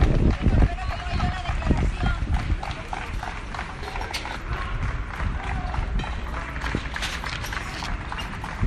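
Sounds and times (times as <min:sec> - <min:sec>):
applause from deputies outside court: 0:00.0 - 0:08.6.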